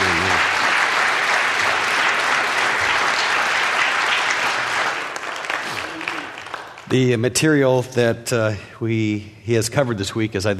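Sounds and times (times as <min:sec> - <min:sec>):
audience applause: 0:00.0 - 0:07.0
speech: 0:06.9 - 0:10.5.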